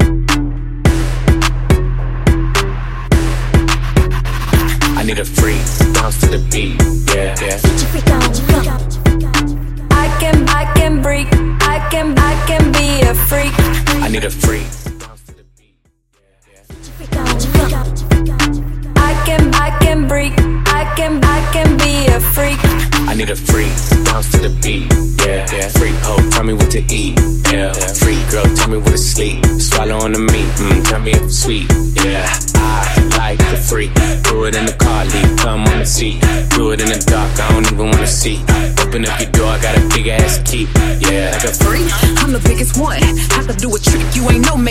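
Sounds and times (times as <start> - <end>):
hip hop rap: 0.2 - 44.6.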